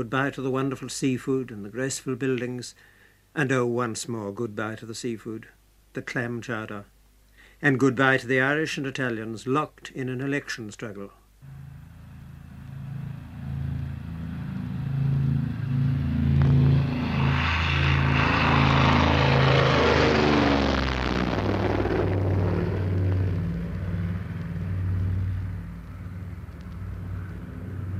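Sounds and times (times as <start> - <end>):
speech: 0.0 - 6.9, 7.6 - 11.6
airplane taking off from Boston: 11.4 - 27.9.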